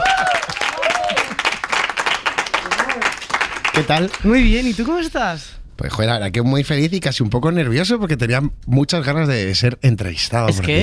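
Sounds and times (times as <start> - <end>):
audience applause: 0.0 - 4.3
speech: 3.8 - 10.8.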